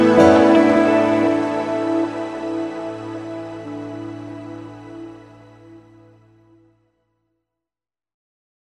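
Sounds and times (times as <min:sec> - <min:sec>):
harmonics: 0:00.0 - 0:06.3.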